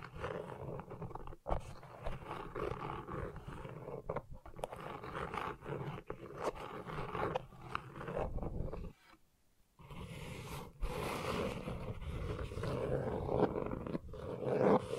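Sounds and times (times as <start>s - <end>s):
gentle gritty scratching: 0.0s - 9.2s, 9.8s - 14.9s.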